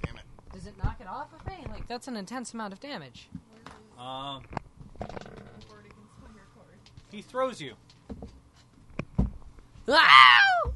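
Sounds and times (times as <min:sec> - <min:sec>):
speech: 0:00.7 - 0:03.4, 0:04.0 - 0:05.3, 0:07.1 - 0:07.8, 0:09.9 - 0:10.7
man mock screaming in imitation of the Wilhelm scream: 0:09.9 - 0:10.7.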